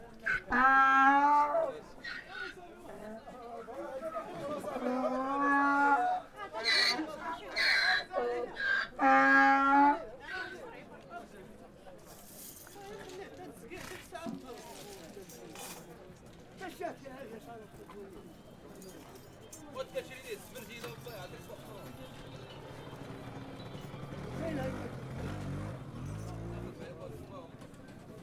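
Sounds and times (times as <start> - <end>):
donkey in Marrakech: 0.2 - 2.6, 4.8 - 10.6.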